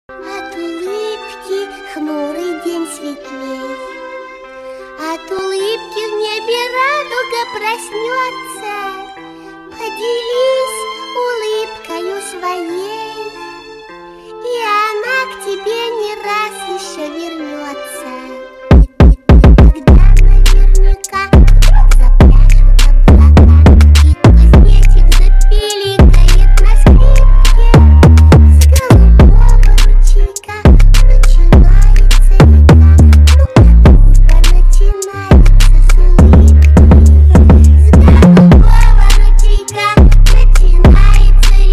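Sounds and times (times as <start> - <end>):
trap remix: 18.7 - 41.7.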